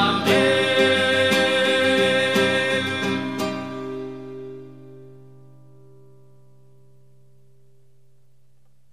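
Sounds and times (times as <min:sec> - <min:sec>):
Advent hymn: 0:00.0 - 0:04.7.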